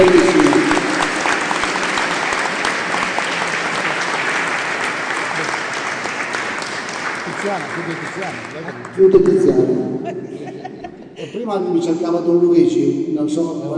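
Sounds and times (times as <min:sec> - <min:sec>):
crowd applause: 0:00.0 - 0:09.6
speech: 0:07.8 - 0:09.6, 0:11.4 - 0:13.7
laughter: 0:09.6 - 0:11.7.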